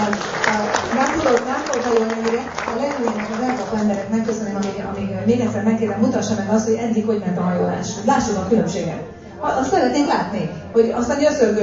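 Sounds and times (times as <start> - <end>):
audience applause: 0.0 - 4.7
speech: 1.4 - 11.6.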